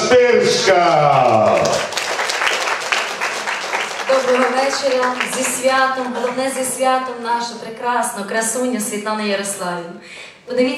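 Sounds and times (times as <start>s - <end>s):
speech: 0.1s - 1.9s, 4.2s - 10.7s
audience applause welcoming a young singer-songwriter on stage: 0.6s - 7.1s.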